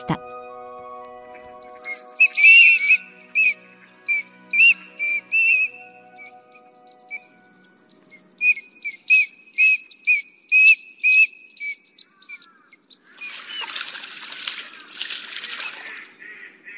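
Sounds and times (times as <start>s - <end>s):
Eurasian teal whistling ringing notes: 0.2s - 11.7s.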